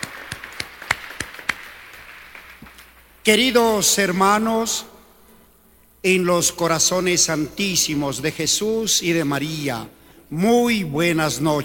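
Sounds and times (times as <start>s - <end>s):
sparse scattered applause: 0.0s - 3.0s
speech: 3.2s - 4.9s, 6.0s - 11.6s.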